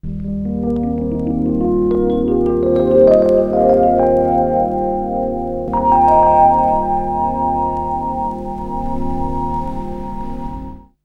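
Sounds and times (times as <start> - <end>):
melodic synth drum and bass: 1.4 - 10.9.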